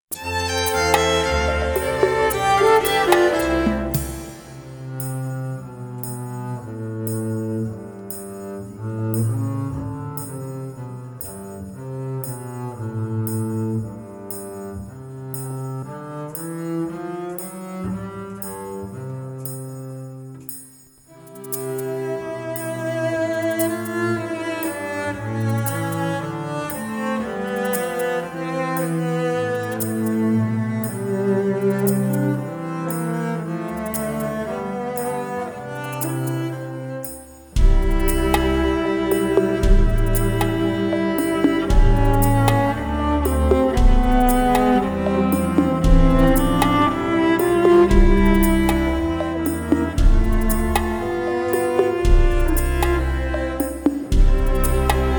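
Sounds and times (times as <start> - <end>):
instrumental music: 0.0 - 55.1.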